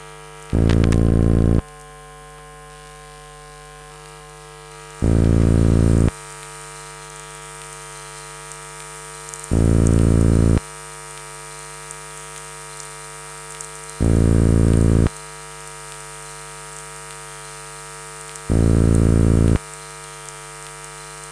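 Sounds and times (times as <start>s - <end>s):
noise: 0.0s - 1.7s, 5.0s - 6.2s, 9.3s - 10.6s, 13.9s - 15.2s, 18.2s - 19.9s.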